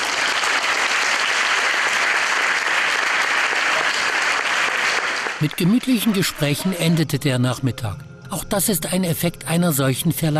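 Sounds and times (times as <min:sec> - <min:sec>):
applause: 0:00.0 - 0:06.6
speech: 0:05.4 - 0:10.3.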